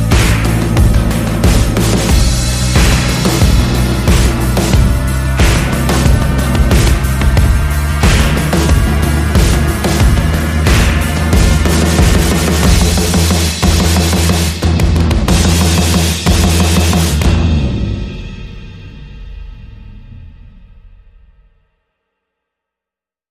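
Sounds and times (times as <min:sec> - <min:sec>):
sound effects: 0:00.0 - 0:18.3
percussion: 0:00.0 - 0:21.2
bass: 0:00.0 - 0:21.6.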